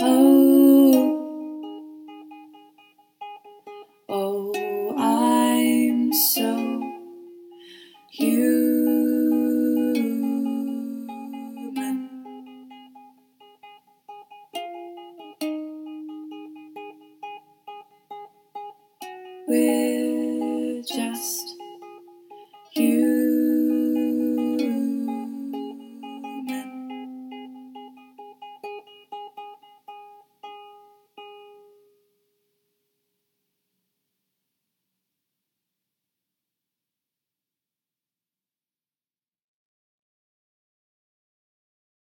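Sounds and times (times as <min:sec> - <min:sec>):
person singing: 0:00.0 - 0:01.8, 0:04.1 - 0:13.1, 0:19.0 - 0:28.2
ukulele not tuned properly: 0:00.0 - 0:31.9.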